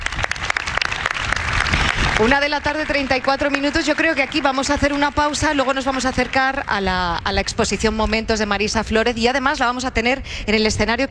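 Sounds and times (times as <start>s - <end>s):
audience applause: 0.0s - 6.8s
speech: 2.2s - 11.0s.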